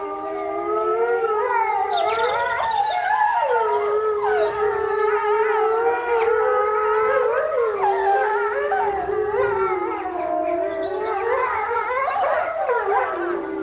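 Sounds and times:
wolves howling: 0.0s - 13.6s.

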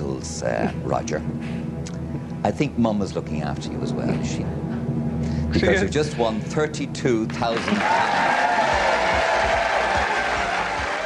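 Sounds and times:
speech: 0.2s - 1.8s, 2.4s - 4.6s, 5.2s - 8.5s
Who Wants to Be a Millionaire studio audience applauding a contestant's win: 7.6s - 11.0s.

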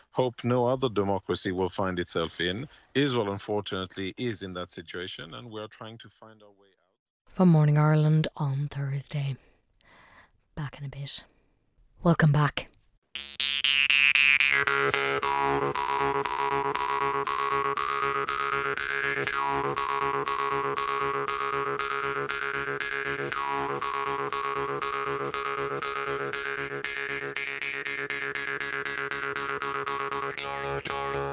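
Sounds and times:
speech: 0.2s - 6.8s, 7.4s - 9.5s, 10.6s - 11.3s, 12.0s - 13.5s, 14.6s - 22.8s
Jew's harp played: 13.1s - 31.3s.

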